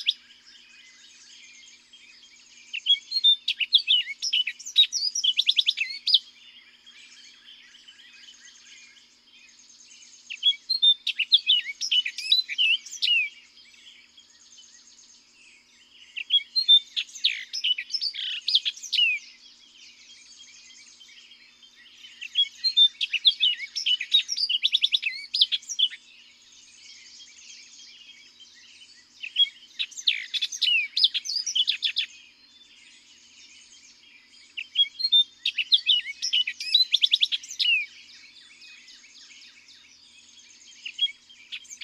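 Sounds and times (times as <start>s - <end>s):
Orchard Oriole singing: 0.0s - 41.8s.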